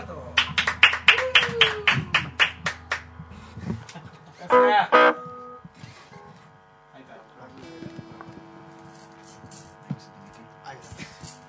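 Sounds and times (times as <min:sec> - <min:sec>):
audience rhythmic clapping at a rock concert: 0:00.4 - 0:03.1.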